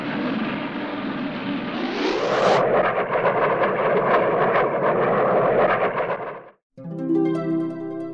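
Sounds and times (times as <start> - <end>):
flying saucer taking off, children's story sound effect: 0.0 - 6.6
bright tonal notes: 6.8 - 8.1.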